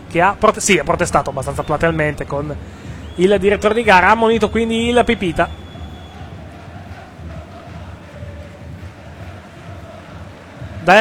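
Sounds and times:
speech: 0:00.1 - 0:05.6
football fans singing in a stadium: 0:04.9 - 0:10.9.

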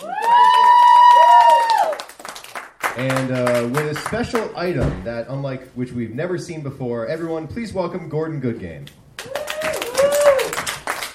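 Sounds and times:
audience applause: 0:00.0 - 0:04.1, 0:09.2 - 0:11.1
speech: 0:03.0 - 0:09.0.

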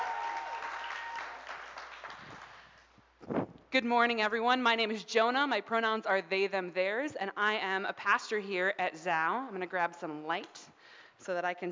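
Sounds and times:
audience applause: 0:00.0 - 0:02.6
speech: 0:03.3 - 0:11.7.

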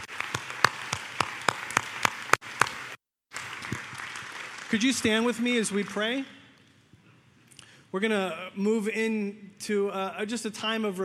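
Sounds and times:
audience applause: 0:00.0 - 0:06.2
rhythmic sharp claps: 0:00.0 - 0:06.3
speech: 0:04.7 - 0:06.4, 0:07.9 - 0:11.0.

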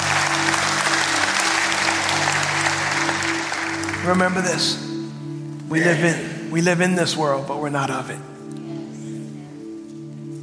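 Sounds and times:
audience clapping: 0:00.0 - 0:05.0
speech: 0:04.0 - 0:04.9, 0:05.7 - 0:08.3.

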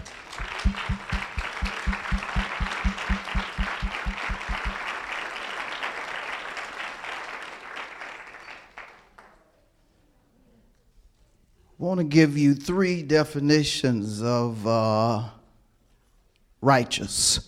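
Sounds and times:
rhythmic low thumping beats: 0:00.0 - 0:04.8
audience clapping: 0:00.0 - 0:09.3
speech: 0:11.9 - 0:15.4, 0:16.6 - 0:17.4.

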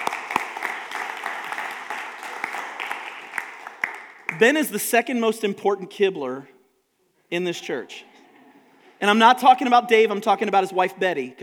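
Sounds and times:
audience applause: 0:00.0 - 0:04.4
speech: 0:04.4 - 0:06.5, 0:07.3 - 0:08.1, 0:09.0 - 0:11.4.

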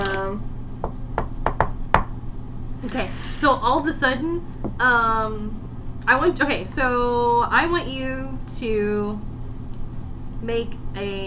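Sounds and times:
knocking on a door: 0:00.8 - 0:02.1
speech: 0:02.9 - 0:09.3, 0:10.4 - 0:11.2.

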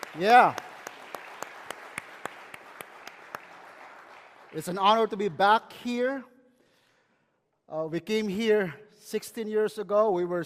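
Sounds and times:
church audience applause: 0:00.0 - 0:05.0
speech: 0:00.2 - 0:00.6, 0:04.5 - 0:06.3, 0:07.7 - 0:10.4.

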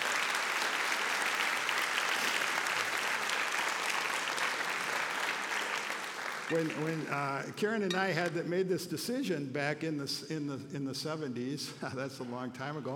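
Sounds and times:
audience applause: 0:00.0 - 0:07.4
speech: 0:06.5 - 0:12.9.

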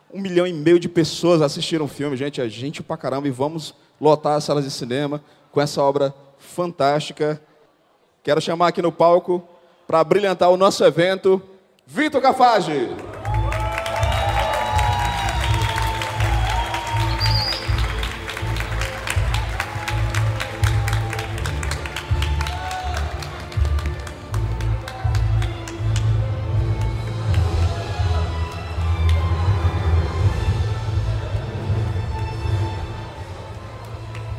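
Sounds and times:
speech: 0:00.1 - 0:07.5, 0:08.2 - 0:13.1
audience applause: 0:12.9 - 0:34.3.

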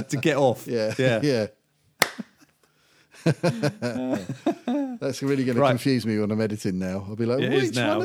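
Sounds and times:
laughter: 0:00.0 - 0:01.2, 0:03.2 - 0:05.0
speech: 0:00.0 - 0:01.6, 0:03.2 - 0:08.0
hand clapping: 0:02.0 - 0:02.4.

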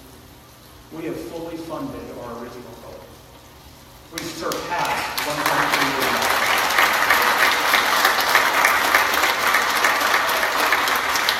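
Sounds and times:
speech: 0:00.9 - 0:03.2, 0:04.1 - 0:05.8
audience applause: 0:04.2 - 0:11.3.

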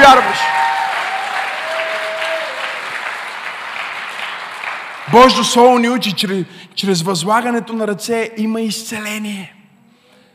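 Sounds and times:
audience applauding: 0:00.0 - 0:06.0
speech: 0:05.1 - 0:09.6.

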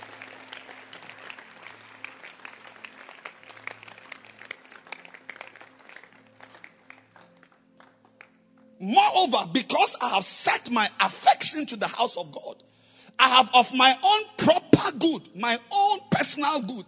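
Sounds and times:
audience clapping hands: 0:00.0 - 0:08.8
speech: 0:08.8 - 0:12.6, 0:13.3 - 0:16.8.

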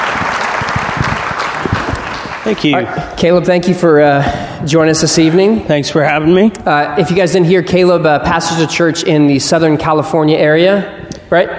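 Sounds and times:
audience applause: 0:00.0 - 0:02.9
speech: 0:02.4 - 0:11.5.

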